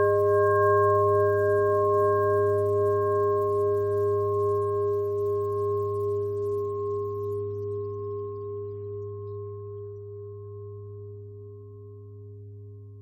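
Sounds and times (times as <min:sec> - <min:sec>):
pentatonic bell melody: 0:00.0 - 0:07.2.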